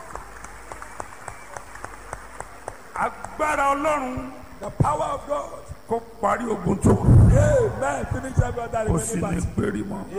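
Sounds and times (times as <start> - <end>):
church congregation clapping for Jesus: 0.0 - 4.0
speech: 3.0 - 10.1.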